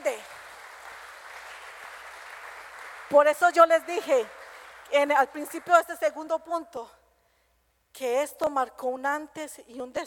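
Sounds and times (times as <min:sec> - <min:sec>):
audience applause: 0:00.2 - 0:03.2
speech: 0:03.1 - 0:07.0, 0:08.0 - 0:10.0.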